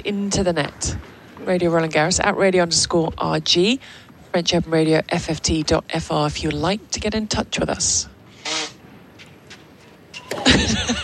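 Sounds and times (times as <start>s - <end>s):
speech: 0.0s - 8.6s
faint snuffles: 8.3s - 8.8s
loud honking nose blowing: 8.3s - 8.8s
laughter: 10.4s - 11.0s.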